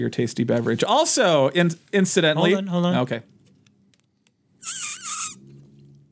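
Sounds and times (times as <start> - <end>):
speech: 0.0 - 3.4
squeaky sipping through a drinking straw: 4.6 - 5.4.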